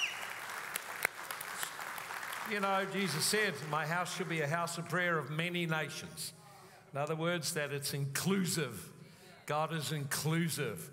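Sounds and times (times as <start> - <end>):
audience clapping: 0.0 - 5.0
speech: 2.5 - 10.9.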